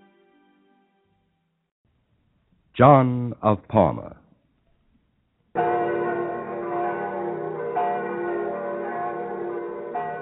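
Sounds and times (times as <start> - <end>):
speech: 2.8 - 4.2
bells of Rome ringing in the distance: 5.6 - 10.2.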